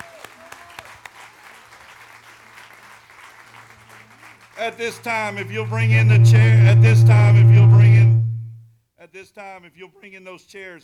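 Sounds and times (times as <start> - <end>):
audience applause: 0.0 - 4.6
speech: 4.6 - 7.8, 9.1 - 10.8.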